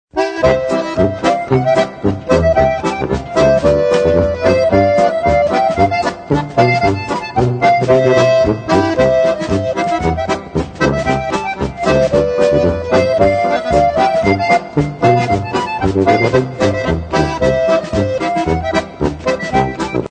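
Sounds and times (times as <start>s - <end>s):
concertina polka: 0.1s - 20.0s.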